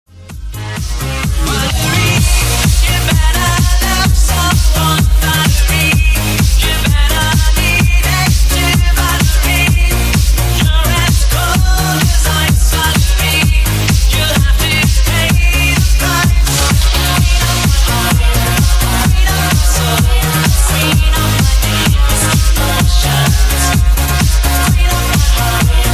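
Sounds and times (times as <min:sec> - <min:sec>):
remix music: 0:00.1 - 0:25.9.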